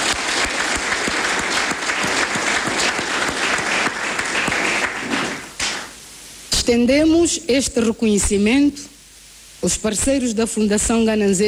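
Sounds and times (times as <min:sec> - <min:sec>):
sustained audience applause: 0:00.0 - 0:06.0
speech: 0:06.7 - 0:08.9, 0:09.6 - 0:11.4.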